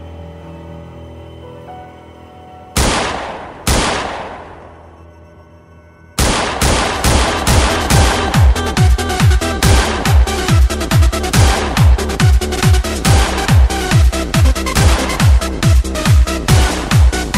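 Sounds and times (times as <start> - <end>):
rapid gunfire: 2.8 - 4.7, 6.2 - 17.3
gunshots with long decaying echoes: 2.8 - 4.9, 6.2 - 17.3.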